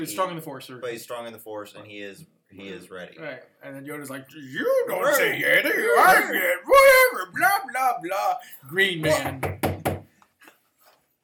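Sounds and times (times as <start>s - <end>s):
speech: 0.0s - 9.7s
laughter: 4.5s - 7.9s
loud knock on a door: 9.1s - 10.1s.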